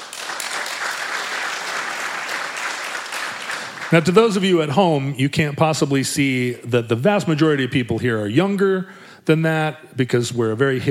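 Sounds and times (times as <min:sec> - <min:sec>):
crowd clapping: 0:00.0 - 0:04.7
speech: 0:03.9 - 0:10.8.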